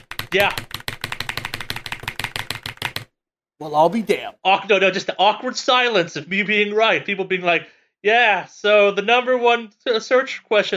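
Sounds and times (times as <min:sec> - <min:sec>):
furious typing on keyboard: 0:00.0 - 0:03.1
speech: 0:00.3 - 0:00.7, 0:03.6 - 0:10.7.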